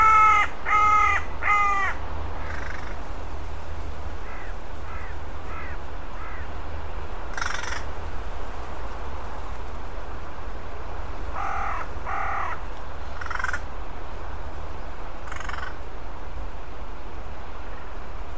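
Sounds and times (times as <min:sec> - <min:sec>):
bird giving harsh harmonic caw-like calls: 0:00.0 - 0:03.0, 0:04.2 - 0:06.5, 0:07.3 - 0:07.9, 0:11.3 - 0:12.6, 0:13.2 - 0:13.7, 0:15.3 - 0:15.8.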